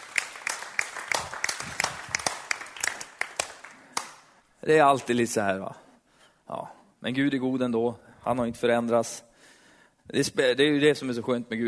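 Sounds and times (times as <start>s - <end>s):
audience applause: 0.0s - 4.2s
speech: 4.6s - 5.8s, 6.5s - 9.3s, 10.1s - 11.6s.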